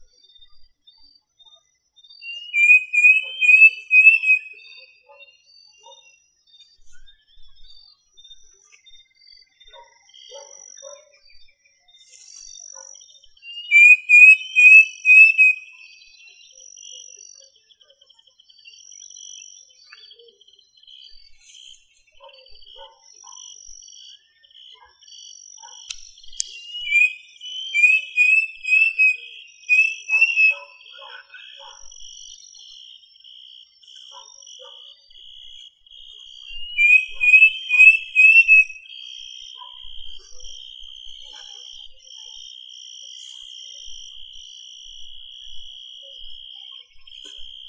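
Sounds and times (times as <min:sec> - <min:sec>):
bird whistling song: 0:02.2 - 0:04.9, 0:13.4 - 0:16.2, 0:26.3 - 0:31.6, 0:36.4 - 0:39.0.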